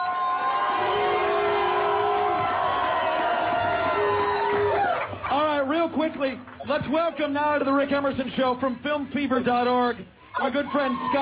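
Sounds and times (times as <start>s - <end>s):
audience cheering at the Viper Room: 0.0s - 5.2s, 10.3s - 11.2s
speech: 5.9s - 11.2s.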